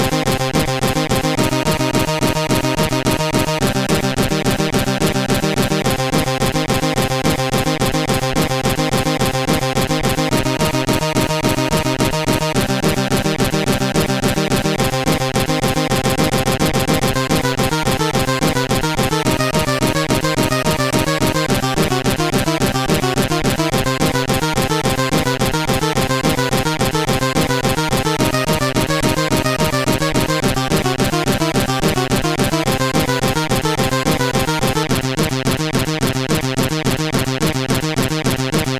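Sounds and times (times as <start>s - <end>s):
chiptune music on CSG8580R5 sound chip: 0.0s - 38.7s.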